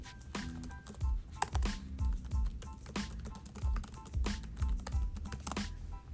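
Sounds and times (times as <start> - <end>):
typing a search query into Google on a computer keyboard: 0.3 - 5.7.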